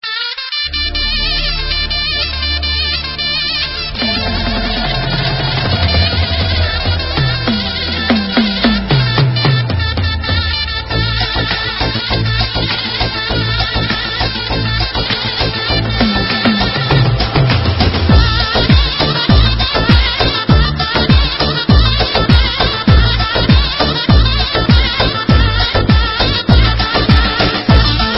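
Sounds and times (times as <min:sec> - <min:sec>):
dabke instrumental music: 0:00.0 - 0:28.1.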